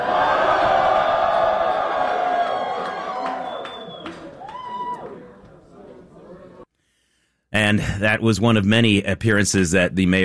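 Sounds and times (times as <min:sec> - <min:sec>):
crowd cheering and shouting at election night party: 0:00.0 - 0:06.1
whoops and whistles: 0:02.4 - 0:05.2
speech: 0:07.6 - 0:10.2.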